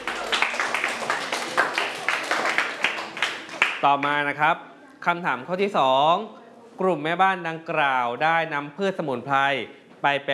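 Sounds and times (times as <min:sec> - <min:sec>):
classroom students clapping: 0:00.0 - 0:04.1
speech: 0:03.8 - 0:10.3.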